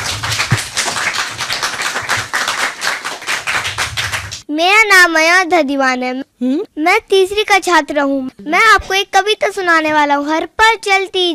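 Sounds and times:
audience applause: 0:00.0 - 0:04.4
speech: 0:04.6 - 0:11.3.

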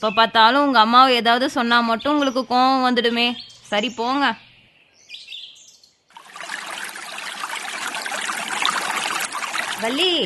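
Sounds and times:
speech: 0:00.0 - 0:04.5, 0:09.8 - 0:10.2
bright bird chirps: 0:01.8 - 0:06.1
flowing water at a bathing spot: 0:06.1 - 0:10.2.

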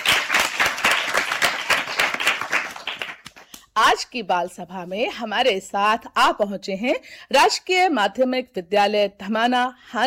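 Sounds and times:
applause: 0:00.0 - 0:03.6
speech: 0:03.8 - 0:10.0.

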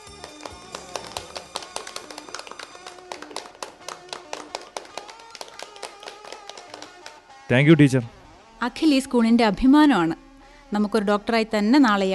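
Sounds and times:
classroom students clapping for a classmate: 0:00.0 - 0:07.2
speech: 0:07.5 - 0:12.1.

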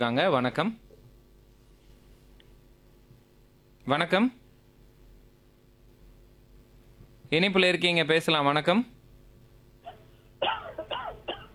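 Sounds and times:
speech: 0:00.0 - 0:00.9, 0:03.9 - 0:04.4, 0:07.3 - 0:08.9
caller coughing over a phone line during a radio health call-in: 0:09.8 - 0:11.5.

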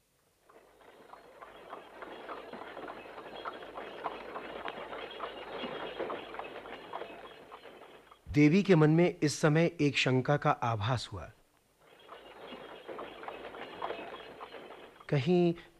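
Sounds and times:
hooves clip-clopping from a horse-drawn tanga cart: 0:00.4 - 0:08.3, 0:11.8 - 0:15.5
continuous rolling rumble of a tanga cart: 0:00.4 - 0:08.8, 0:11.8 - 0:15.6
speech: 0:08.4 - 0:11.4, 0:15.1 - 0:15.7.

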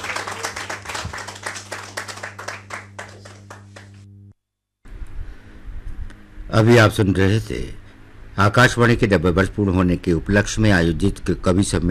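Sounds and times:
audience clapping at a poetry recital marking 90 years of All India Radio: 0:00.0 - 0:04.1
speech: 0:06.5 - 0:07.8, 0:08.4 - 0:11.8.

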